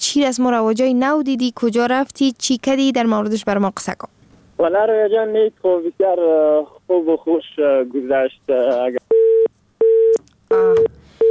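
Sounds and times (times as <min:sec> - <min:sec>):
speech: 0:00.1 - 0:09.1, 0:10.5 - 0:10.9
telephone busy tone after a dropped call: 0:09.1 - 0:11.3.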